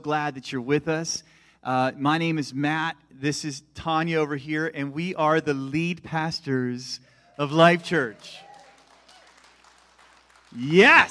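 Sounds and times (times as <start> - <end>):
speech: 0.0 - 8.4, 10.5 - 11.0
audience cheering and applauding: 7.3 - 11.0.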